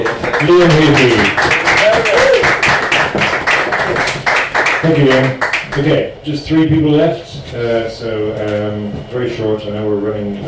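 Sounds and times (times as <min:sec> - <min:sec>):
audience applause: 0:00.0 - 0:05.9
speech: 0:00.4 - 0:01.6, 0:04.9 - 0:10.4.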